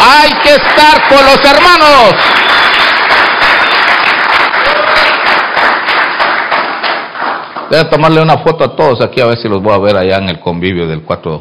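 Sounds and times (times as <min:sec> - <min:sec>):
people clapping hands: 0:00.0 - 0:08.3
speech: 0:00.3 - 0:02.7, 0:07.7 - 0:11.3.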